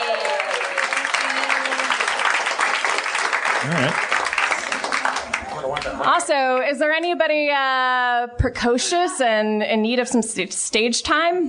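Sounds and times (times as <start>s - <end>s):
audience applause: 0.0s - 6.1s
speech: 3.6s - 4.1s, 5.9s - 11.4s.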